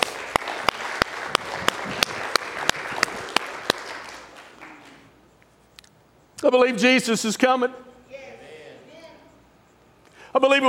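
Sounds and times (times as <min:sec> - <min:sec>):
audience hand clapping: 0:00.0 - 0:05.2
speech: 0:06.4 - 0:07.9, 0:10.4 - 0:10.6.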